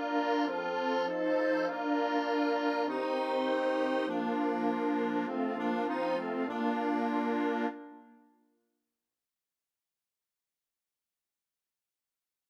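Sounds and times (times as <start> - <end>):
national anthem music: 0.0 - 8.0.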